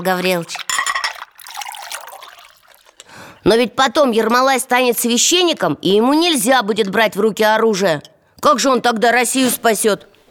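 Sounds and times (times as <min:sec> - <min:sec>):
speech: 0:00.0 - 0:00.7, 0:03.4 - 0:10.1
tea pouring into a cup: 0:00.0 - 0:03.4.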